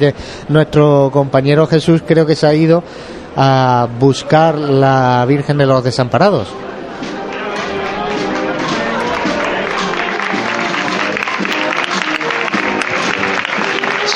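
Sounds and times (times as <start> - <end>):
speech: 0.0 - 6.8
crowd applause at outdoor street procession: 7.0 - 14.1.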